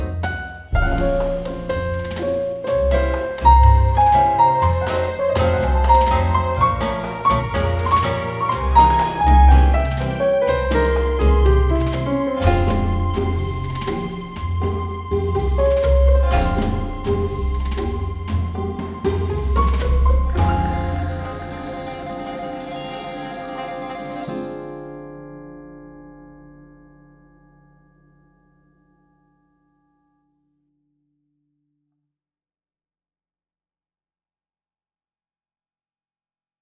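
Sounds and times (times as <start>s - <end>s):
tango music: 0.0s - 25.5s.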